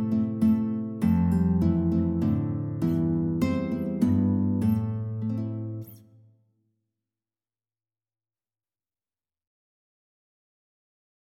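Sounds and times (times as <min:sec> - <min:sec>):
guitar quartet playing: 0:00.0 - 0:06.0.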